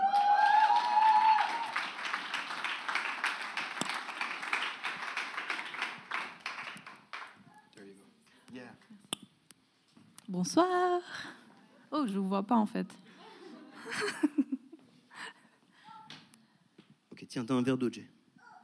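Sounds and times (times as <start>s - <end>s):
audience applause: 0.0s - 7.4s
speech: 10.4s - 11.3s, 12.0s - 13.0s, 17.4s - 18.2s
laughter: 13.1s - 14.8s.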